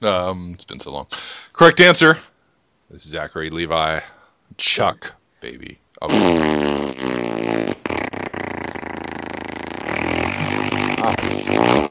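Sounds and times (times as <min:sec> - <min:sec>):
speech: 0:00.0 - 0:02.3, 0:02.9 - 0:07.9
long loud wet fart: 0:06.1 - 0:11.8.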